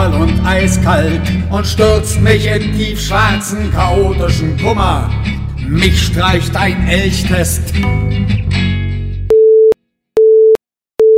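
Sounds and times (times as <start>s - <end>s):
speech: 0.4s - 8.7s
telephone busy tone: 9.3s - 11.1s.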